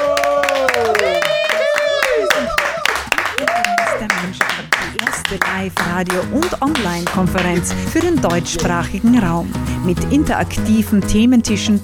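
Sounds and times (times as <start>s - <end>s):
audience applause: 0.0s - 8.5s
speech: 5.6s - 11.8s.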